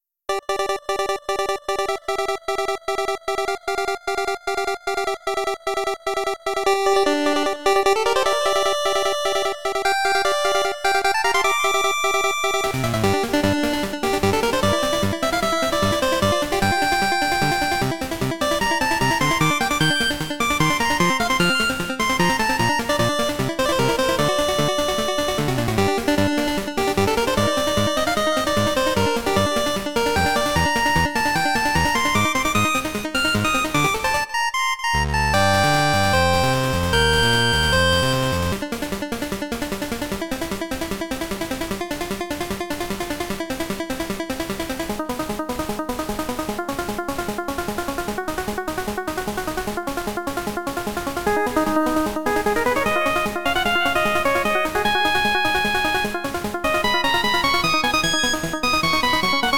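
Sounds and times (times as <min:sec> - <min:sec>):
8-bit music: 0:00.3 - 0:59.5.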